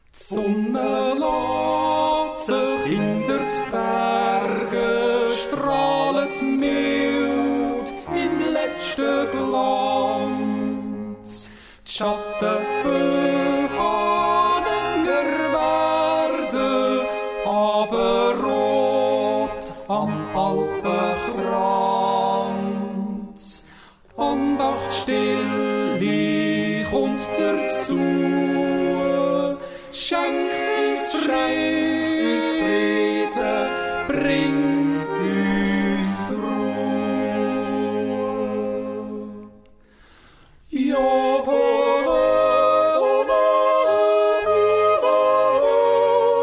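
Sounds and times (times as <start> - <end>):
two voices singing a duet: 0.2 - 39.8, 40.6 - 46.4.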